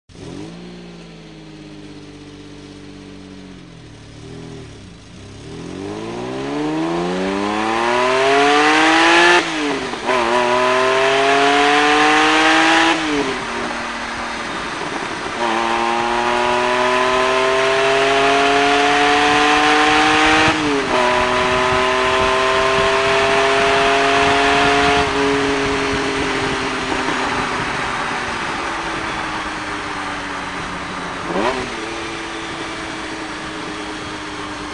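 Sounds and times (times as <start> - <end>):
Lamborghini Diablo heard from inside: 0.1 - 34.7.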